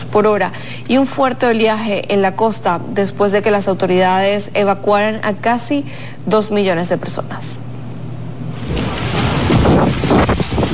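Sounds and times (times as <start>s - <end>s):
speech: 0.2s - 7.7s
strong wind gusts of Typhoon Babi in northern Taiwan buffeting the microphone: 8.6s - 10.7s
torrential rain of Typhoon Babi in northern Taiwan: 8.7s - 10.7s.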